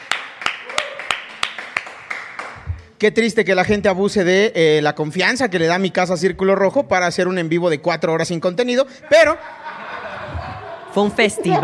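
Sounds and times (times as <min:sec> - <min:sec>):
hand claps: 0:00.0 - 0:03.0
speech: 0:03.0 - 0:09.7, 0:10.9 - 0:11.6
laughter: 0:09.0 - 0:11.6.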